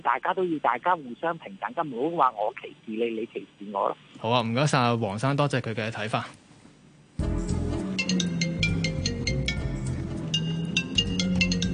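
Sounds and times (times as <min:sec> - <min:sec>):
speech: 0:00.0 - 0:06.4
mobile phone ringtone ringing: 0:07.9 - 0:11.7.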